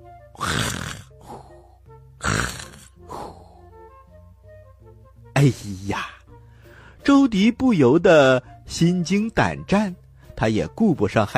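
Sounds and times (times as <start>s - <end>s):
snoring: 0.4s - 3.6s
speech: 5.4s - 6.1s, 7.1s - 11.3s.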